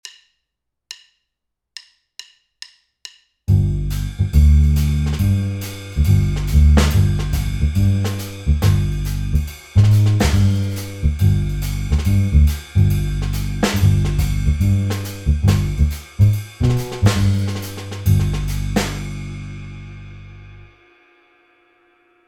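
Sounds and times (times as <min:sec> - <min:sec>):
G7b9 backing track without piano: 0:03.5 - 0:20.6.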